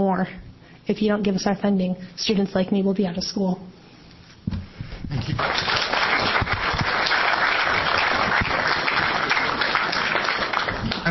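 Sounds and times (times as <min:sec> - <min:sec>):
speech: 0:00.0 - 0:03.8, 0:04.4 - 0:05.9
audience applause: 0:05.2 - 0:11.0.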